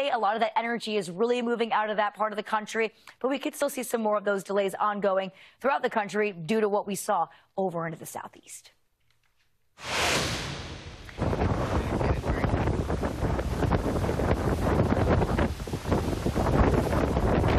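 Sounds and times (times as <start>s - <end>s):
speech: 0.0s - 8.8s, 9.8s - 10.4s
hurricane wind: 9.8s - 17.5s
hurricane rain: 11.0s - 17.5s.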